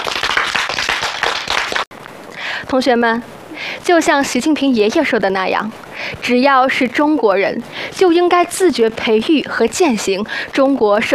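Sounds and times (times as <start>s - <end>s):
students applauding the engineers: 0.0s - 1.9s
speech: 2.7s - 11.1s.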